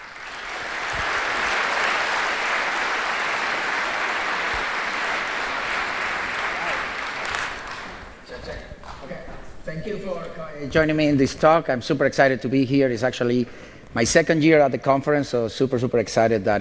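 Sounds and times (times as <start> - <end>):
conference audience applause: 0.0 - 8.2
speech: 9.9 - 16.6.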